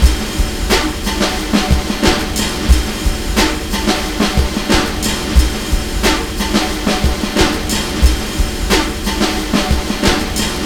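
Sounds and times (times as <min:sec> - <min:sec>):
drum loop: 0:00.0 - 0:10.6.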